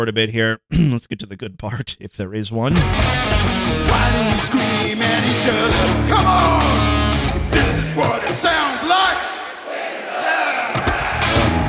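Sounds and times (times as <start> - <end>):
speech: 0.0 - 8.5
audience cheering half-heartedly: 5.8 - 11.6.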